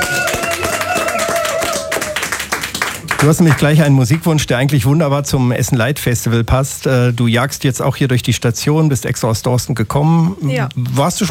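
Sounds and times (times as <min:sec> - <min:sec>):
audience applause: 0:00.0 - 0:03.9
speech: 0:03.2 - 0:11.3.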